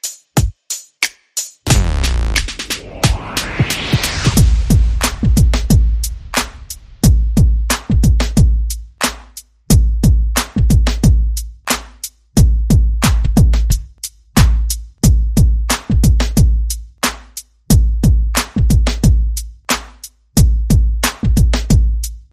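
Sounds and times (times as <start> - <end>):
percussion: 0.0 - 22.3
sound effects: 1.7 - 7.1.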